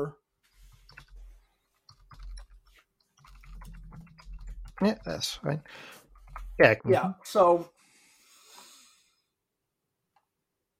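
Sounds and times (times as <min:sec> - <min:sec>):
speech: 0:00.0 - 0:00.2, 0:04.8 - 0:06.0, 0:06.6 - 0:07.8
computer keyboard typing: 0:00.6 - 0:06.8.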